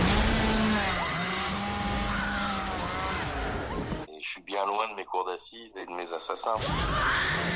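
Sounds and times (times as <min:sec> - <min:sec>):
chainsaw cutting wood: 0:00.0 - 0:04.0
speech: 0:04.6 - 0:07.5.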